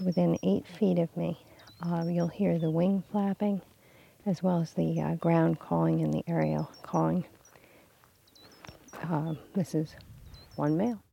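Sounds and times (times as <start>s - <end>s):
Gray's lark calls: 0.0s - 11.1s.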